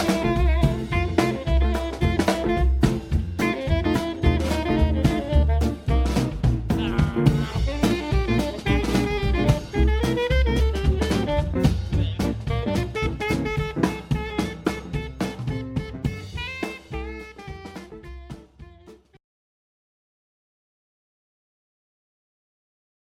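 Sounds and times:
drums in New Orleans music: 0.0 - 19.2
saxophone in New Orleans music: 0.0 - 19.2
trombone in New Orleans music: 0.0 - 19.2
upright bass in New Orleans music: 0.0 - 19.2
person singing New Orleans style vocals: 6.7 - 8.8.

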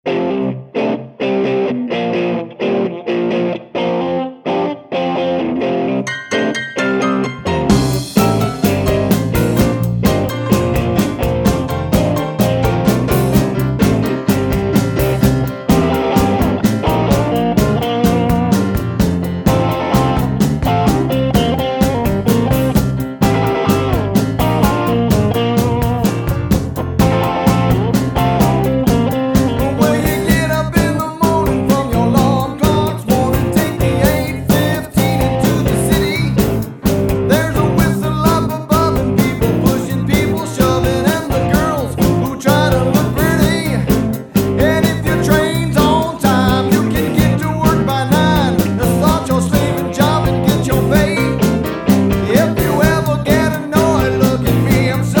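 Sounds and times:
classic rock variety band playing: 0.1 - 55.1.

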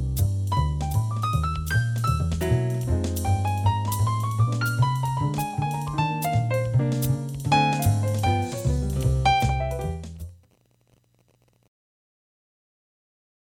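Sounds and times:
jazz band trio playing: 0.0 - 10.3.

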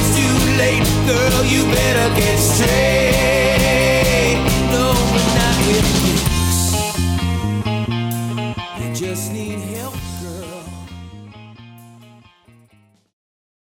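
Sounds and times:
classic rock band playing live: 0.0 - 12.6.

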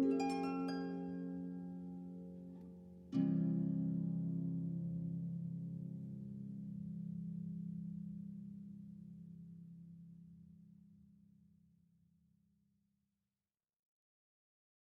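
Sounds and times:
harp: 0.0 - 10.0.

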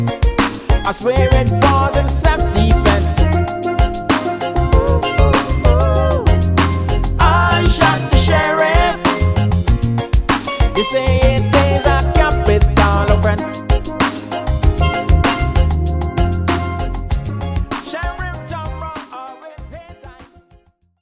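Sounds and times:
vocals: 0.5 - 9.6, 10.7 - 14.3, 17.7 - 20.4
steel drum: 2.5 - 7.3, 13.6 - 17.3.

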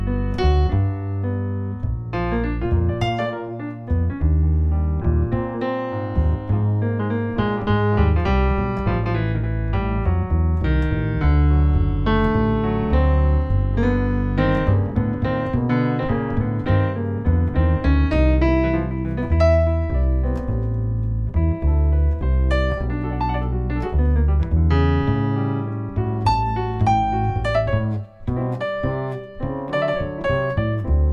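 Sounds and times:
jazz piano bass notes: 0.0 - 31.1.

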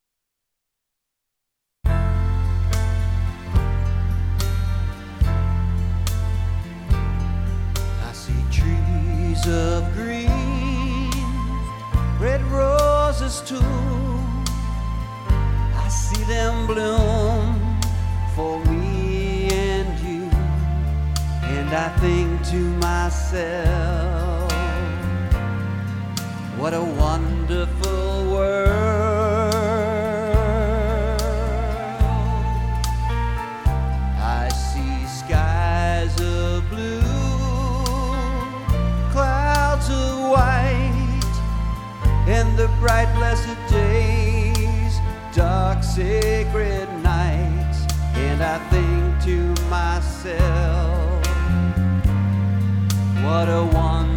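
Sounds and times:
acoustic guitar: 1.9 - 54.1
vocals: 1.9 - 54.1.

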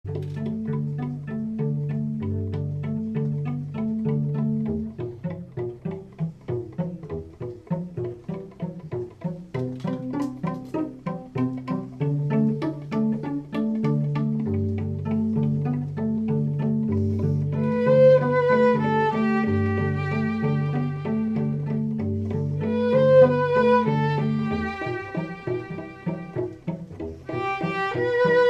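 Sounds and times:
string quartet: 0.0 - 28.4.

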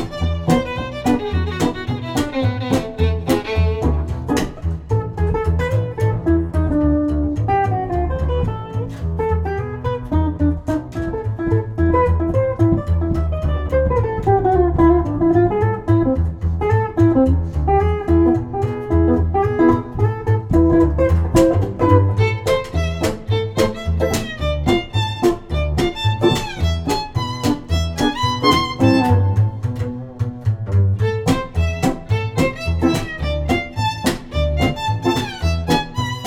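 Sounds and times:
Gipsy jazz string trio: 0.0 - 36.2.

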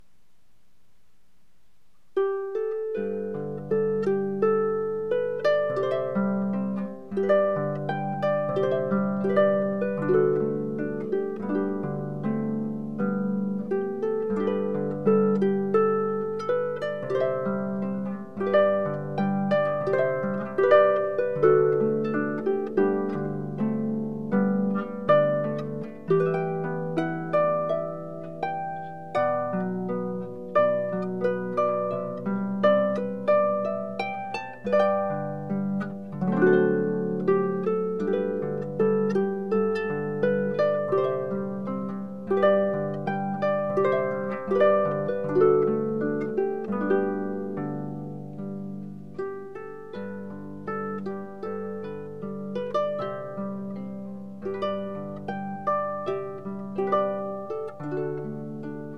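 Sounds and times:
harp: 0.0 - 58.9.

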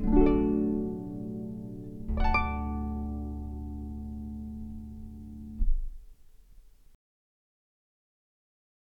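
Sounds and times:
harp playing allegro maestoso: 0.0 - 5.6.

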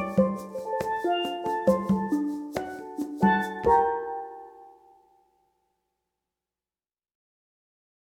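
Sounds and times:
steel drum band: 0.0 - 4.7.

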